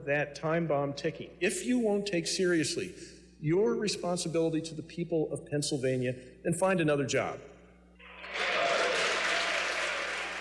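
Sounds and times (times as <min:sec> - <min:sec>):
speech: 0:00.0 - 0:07.5
lawmakers applauding: 0:08.0 - 0:10.4
lawmakers cheering: 0:08.0 - 0:10.4.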